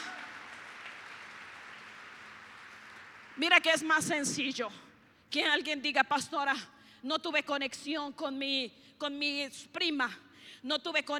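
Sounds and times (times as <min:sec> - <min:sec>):
audience applause: 0:00.0 - 0:03.4
speech: 0:03.4 - 0:11.1.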